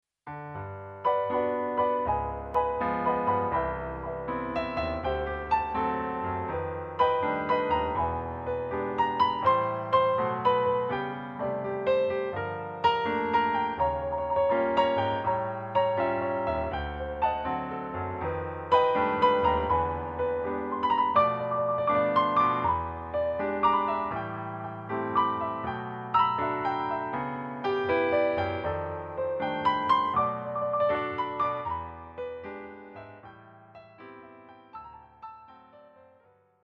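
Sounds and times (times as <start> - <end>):
piano: 0.2 - 36.6.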